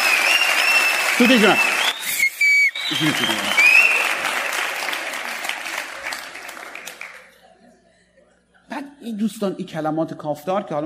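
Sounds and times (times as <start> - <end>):
bright whistles: 0.0 - 4.2
audience clapping: 0.0 - 7.4
speech: 1.2 - 1.8, 2.9 - 3.8, 9.0 - 10.8
laughter: 2.8 - 9.0.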